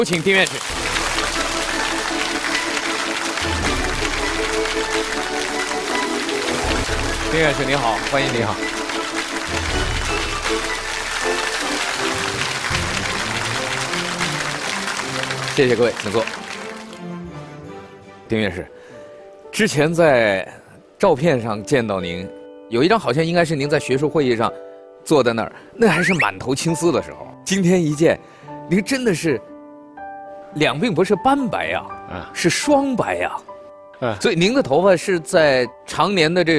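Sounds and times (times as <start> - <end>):
speech: 0.0 - 0.9, 7.3 - 8.8, 15.6 - 16.4, 18.3 - 18.8, 19.6 - 29.5, 30.5 - 36.5
large audience applause: 0.0 - 17.1
upbeat music with a steady bass pulse: 0.7 - 17.2, 25.9 - 26.4.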